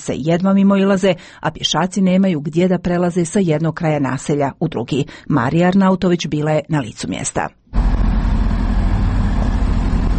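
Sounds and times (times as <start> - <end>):
speech: 0.0 - 7.8
excavators and trucks rumbling at roadworks in Sarajevo: 7.8 - 10.1.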